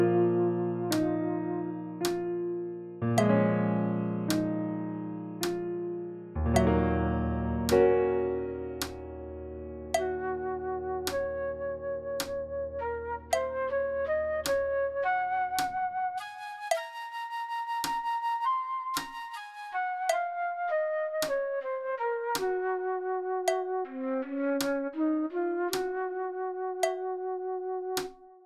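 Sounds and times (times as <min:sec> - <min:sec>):
flute in practice playback: 0:00.0 - 0:02.5, 0:09.9 - 0:28.4
piano in practice playback: 0:00.0 - 0:28.3.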